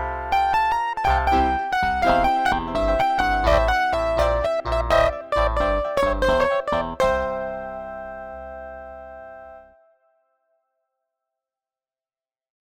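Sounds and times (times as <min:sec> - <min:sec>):
MIDI blues music: 0:00.0 - 0:07.7.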